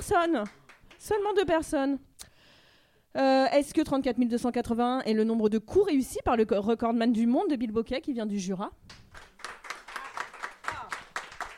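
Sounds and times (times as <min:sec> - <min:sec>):
speech: 0:00.0 - 0:02.1, 0:03.1 - 0:09.2
studio audience clapping in unison: 0:00.3 - 0:01.3, 0:08.9 - 0:11.5.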